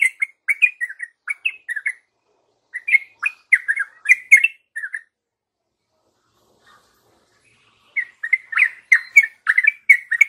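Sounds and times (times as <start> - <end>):
yellow-vented bulbul chattering warbled song: 0.0 - 2.1, 2.7 - 5.2, 7.4 - 10.2.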